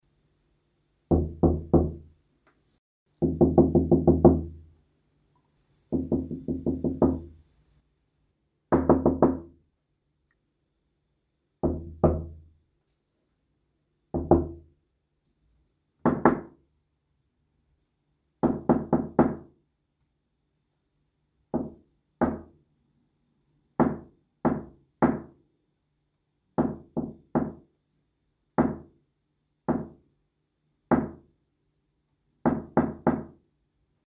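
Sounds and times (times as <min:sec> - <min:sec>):
knocking on a light interior door: 0:01.1 - 0:02.1, 0:03.2 - 0:04.6, 0:05.9 - 0:07.4, 0:08.7 - 0:09.5, 0:11.6 - 0:12.4, 0:14.1 - 0:14.7, 0:16.0 - 0:16.5, 0:18.4 - 0:19.5, 0:21.5 - 0:22.5, 0:23.8 - 0:25.3, 0:26.6 - 0:27.6, 0:28.6 - 0:28.9, 0:29.7 - 0:30.0, 0:32.5 - 0:33.4.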